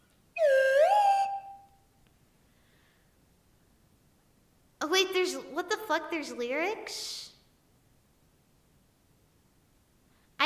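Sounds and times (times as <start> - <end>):
slide whistle: 0.4 - 1.9
speech: 5.0 - 7.3.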